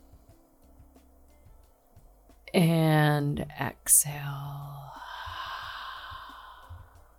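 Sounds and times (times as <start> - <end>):
speech: 2.5 - 5.0
slow deep exhale during a guided breathing exercise: 4.9 - 7.1.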